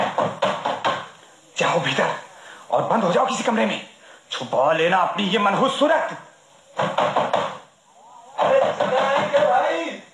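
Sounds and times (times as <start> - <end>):
someone banging loudly on a door: 0.0 - 1.1, 6.8 - 7.6, 8.4 - 9.6
speech: 1.7 - 7.2.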